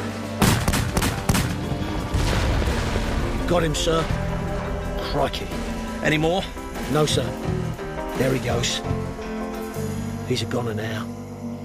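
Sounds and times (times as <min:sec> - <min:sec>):
rumbling background: 0:00.0 - 0:10.8
automatic gunfire: 0:00.4 - 0:01.6
speech: 0:03.5 - 0:04.2, 0:05.1 - 0:07.6, 0:08.2 - 0:09.1, 0:10.3 - 0:11.2.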